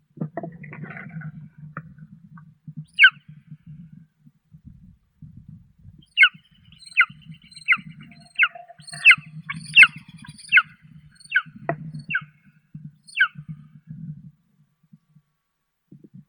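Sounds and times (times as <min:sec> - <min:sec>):
golden eagle Aquila chrysaetos calling: 0:02.9 - 0:03.2, 0:06.1 - 0:12.3, 0:13.1 - 0:13.4.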